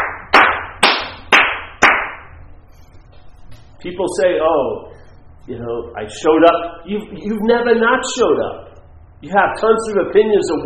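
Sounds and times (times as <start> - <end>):
audience clapping: 0.0 - 2.2
speech: 3.8 - 4.9, 5.5 - 10.6.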